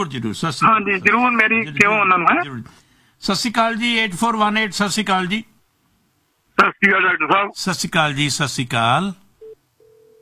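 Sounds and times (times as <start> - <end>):
speech: 0.0 - 5.5, 6.6 - 9.2
telephone line beeps after a disconnected phone call: 9.4 - 10.1.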